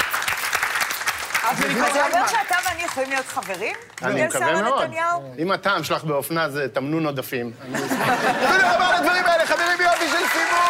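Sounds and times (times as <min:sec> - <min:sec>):
audience applause: 0:00.0 - 0:04.2, 0:08.5 - 0:10.6
speech: 0:01.5 - 0:10.6
laughter: 0:07.6 - 0:10.6.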